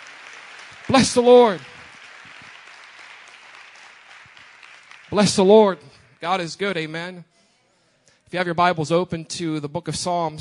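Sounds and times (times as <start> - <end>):
crowd clapping: 0.0 - 6.9
speech: 0.9 - 1.7, 5.2 - 7.3, 8.3 - 10.3.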